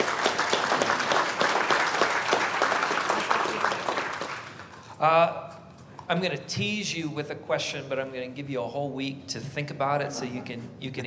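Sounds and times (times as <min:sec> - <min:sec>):
audience applause: 0:00.0 - 0:04.8
speech: 0:05.0 - 0:05.4, 0:06.1 - 0:11.0.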